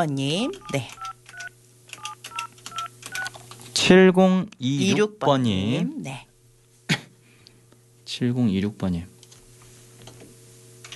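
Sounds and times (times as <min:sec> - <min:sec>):
speech: 0:00.0 - 0:01.1, 0:03.8 - 0:06.3, 0:08.2 - 0:09.1
telephone keypad tones: 0:00.6 - 0:03.4.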